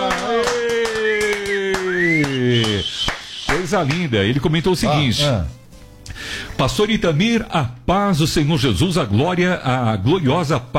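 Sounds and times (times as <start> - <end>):
clapping: 0.0 - 4.1
speech: 3.7 - 5.6, 6.6 - 10.7.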